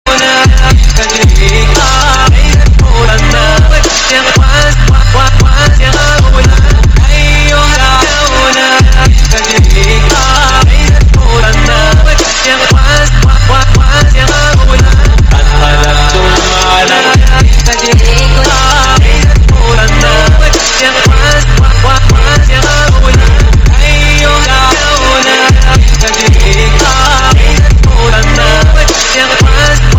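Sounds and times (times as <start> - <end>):
Arabic trap music: 0.0 - 29.9.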